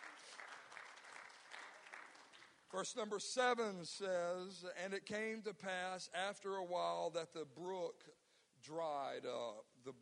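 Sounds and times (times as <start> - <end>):
audience applauding: 0.0 - 2.6
speech: 2.7 - 9.9.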